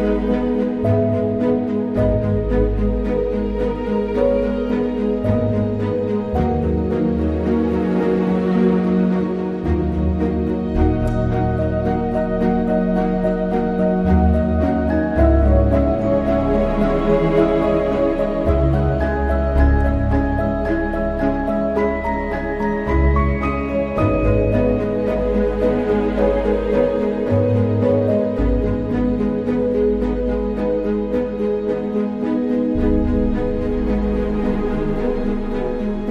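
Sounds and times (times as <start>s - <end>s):
band strings: 0.0s - 36.0s
dramatic dark piano: 0.0s - 36.0s.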